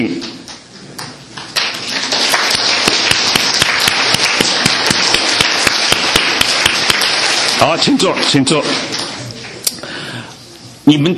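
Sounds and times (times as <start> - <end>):
speech: 0.0 - 0.4, 7.6 - 9.0, 10.9 - 11.1
audience applause: 1.4 - 9.6.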